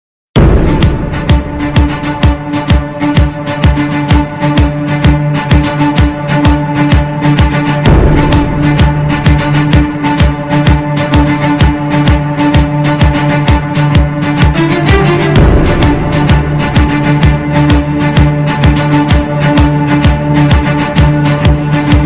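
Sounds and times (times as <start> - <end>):
Caribbean instrumental music: 0.4 - 22.0.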